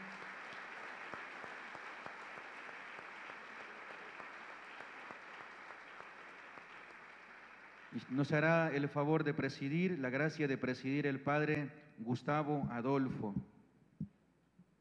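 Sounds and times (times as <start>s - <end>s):
applause: 0.0s - 8.9s
speech: 7.9s - 13.5s.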